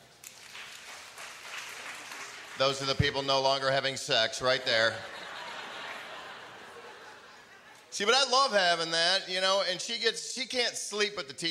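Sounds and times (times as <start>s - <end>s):
audience clapping: 0.2s - 3.7s
speech: 2.6s - 5.2s, 8.0s - 11.4s
laughter: 4.6s - 7.9s.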